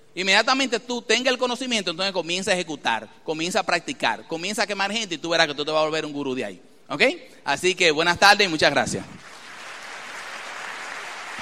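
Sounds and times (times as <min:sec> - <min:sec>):
speech: 0:00.2 - 0:09.3
audience applause: 0:09.2 - 0:11.4.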